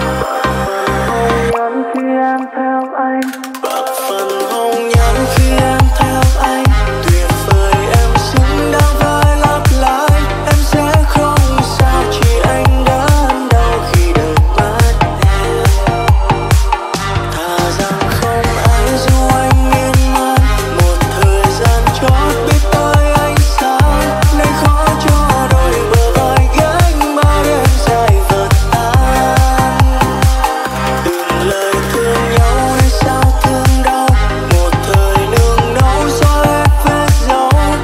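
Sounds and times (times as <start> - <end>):
remix music: 0.0 - 37.8.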